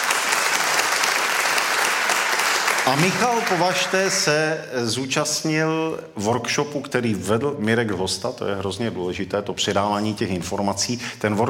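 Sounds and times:
audience applauding a folk singer at a concert of Carpathian love songs: 0:00.0 - 0:04.3
speech: 0:02.8 - 0:11.4.

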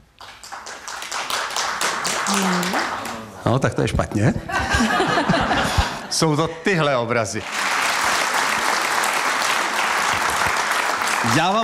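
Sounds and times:
audience clapping: 0:00.1 - 0:03.6, 0:07.1 - 0:11.6
speech: 0:02.3 - 0:05.0, 0:06.1 - 0:07.6, 0:11.4 - 0:11.6
laughter: 0:04.2 - 0:06.6.

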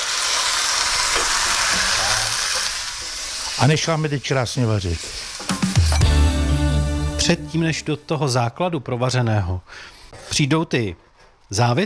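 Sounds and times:
broth poured onto sizzling fried onions: 0:00.0 - 0:06.3
speech: 0:03.6 - 0:05.2, 0:07.3 - 0:11.8.

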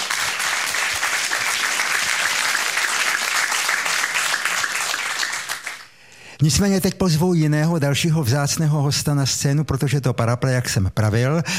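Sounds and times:
audience applause: 0:00.0 - 0:05.9
speech: 0:06.4 - 0:11.5.

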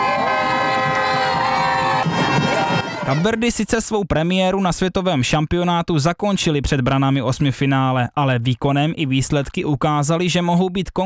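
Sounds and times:
crowd cheering footballers' parade through streets: 0:00.0 - 0:03.5
shrill horns or whistles blaring: 0:00.0 - 0:03.5
speech: 0:03.1 - 0:11.0.

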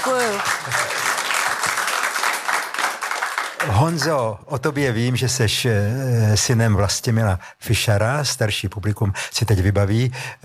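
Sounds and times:
speech: 0:00.0 - 0:01.0, 0:03.6 - 0:10.4
live talk-show audience applause: 0:00.0 - 0:04.3.

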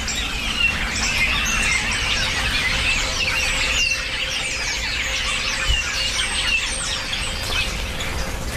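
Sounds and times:
flock of birds calling: 0:00.0 - 0:08.5.

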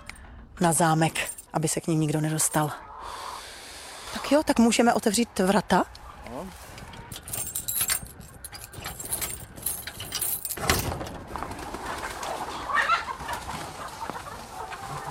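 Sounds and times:
speech: 0:00.6 - 0:03.2, 0:04.1 - 0:06.7
hens in a henhouse: 0:02.4 - 0:07.2, 0:11.2 - 0:15.0.

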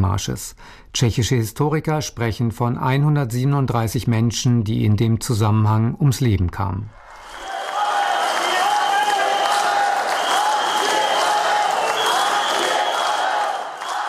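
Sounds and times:
speech: 0:00.0 - 0:07.0
spectators whistling at President Petr Pavel: 0:06.9 - 0:14.0.

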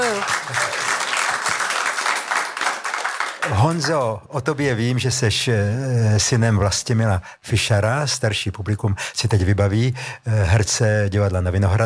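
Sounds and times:
audience applause: 0:00.0 - 0:04.0
speech: 0:03.5 - 0:11.8.

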